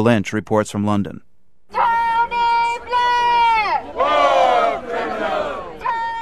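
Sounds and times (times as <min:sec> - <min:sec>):
speech: 0:00.0 - 0:01.3
crowd of protesters shouting in unison outside courtroom: 0:01.8 - 0:06.2.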